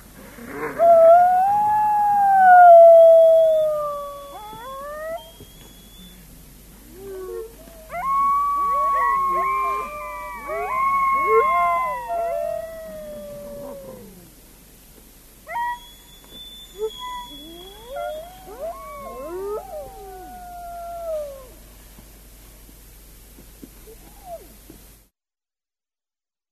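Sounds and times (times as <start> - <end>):
grey wolf pack in a chorus of howls and yips: 0.5 - 6.2, 6.9 - 14.3, 15.5 - 21.6.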